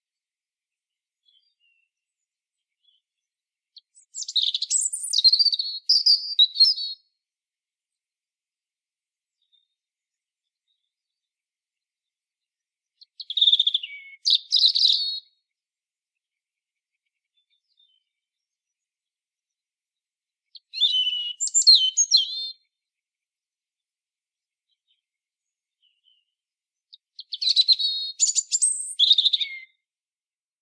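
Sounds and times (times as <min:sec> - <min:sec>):
European robin singing: 0:01.2 - 0:07.0, 0:12.9 - 0:15.4, 0:20.5 - 0:22.7, 0:26.9 - 0:29.8.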